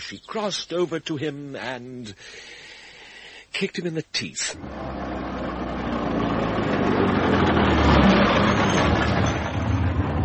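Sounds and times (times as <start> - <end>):
speech: 0.0 - 2.6, 3.6 - 5.1
car engine rumbling as the car pulls up and drives off: 4.6 - 10.2.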